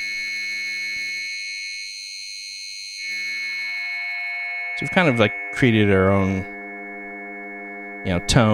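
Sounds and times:
filtered synthesizer noise drone: 0:03.0 - 0:08.5
speech: 0:04.8 - 0:06.5, 0:08.0 - 0:08.5.

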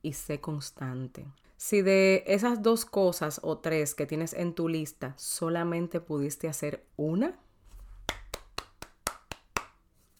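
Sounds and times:
speech: 0:00.0 - 0:07.4
sharp hand claps: 0:08.1 - 0:09.8.

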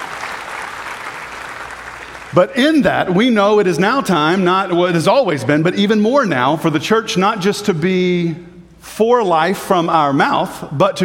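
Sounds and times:
audience clapping hands in praise: 0:00.0 - 0:02.4
speech: 0:02.3 - 0:11.0.

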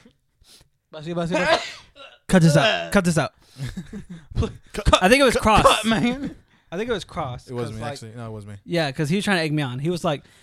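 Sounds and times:
speech: 0:00.9 - 0:10.4
person sneezing: 0:01.4 - 0:02.9.

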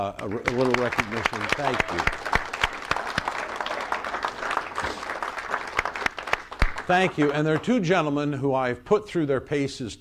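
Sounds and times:
speech: 0:00.0 - 0:02.4, 0:06.9 - 0:09.9
audience applause: 0:00.2 - 0:07.7.

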